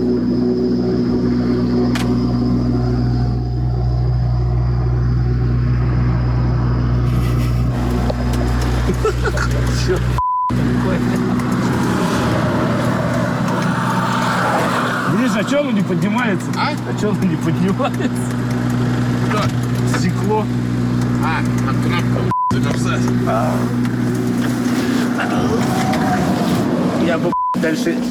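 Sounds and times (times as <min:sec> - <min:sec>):
diesel car engine idling after starting: 0:00.0 - 0:28.0
laughter: 0:08.5 - 0:10.2, 0:17.1 - 0:18.3
speech: 0:15.6 - 0:18.7, 0:19.4 - 0:22.3, 0:23.3 - 0:23.8, 0:27.1 - 0:28.0
short beep: 0:22.3 - 0:22.6.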